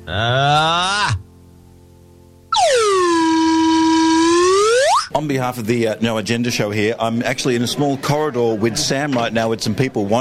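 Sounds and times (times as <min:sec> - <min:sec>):
speech: 0:00.0 - 0:01.3, 0:05.2 - 0:10.2
slide whistle: 0:02.5 - 0:05.1.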